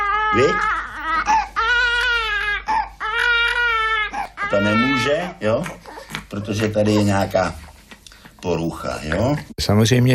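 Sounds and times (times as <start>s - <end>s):
baby girl crying, infant aged 10-20 weeks: 0.0s - 7.5s
speech: 0.3s - 0.8s, 4.5s - 7.6s, 8.4s - 10.1s.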